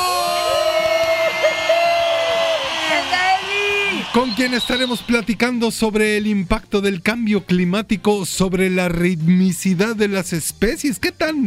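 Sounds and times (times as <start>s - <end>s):
audience applause: 0.3s - 5.5s
speech: 4.2s - 11.4s.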